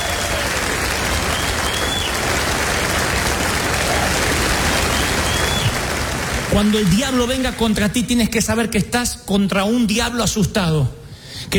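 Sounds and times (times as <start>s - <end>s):
audience applauding: 0.0s - 8.1s
speech: 6.6s - 11.5s.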